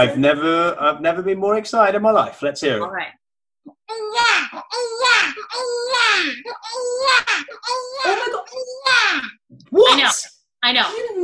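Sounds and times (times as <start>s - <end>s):
speech: 0.0s - 11.2s
person imitating a toddler crying fit over a full diaper: 3.9s - 9.4s.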